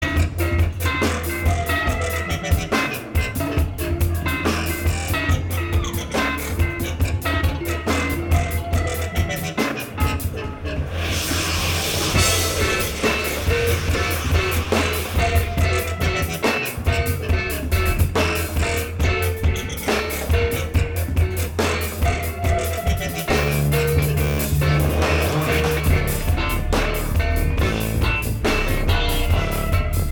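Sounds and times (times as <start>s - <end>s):
improvised music jam: 0.0s - 30.0s.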